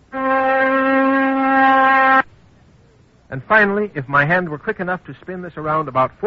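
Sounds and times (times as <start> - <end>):
oscillator tone at 256 cycles per second: 0.0 - 2.3
speech: 3.3 - 6.2.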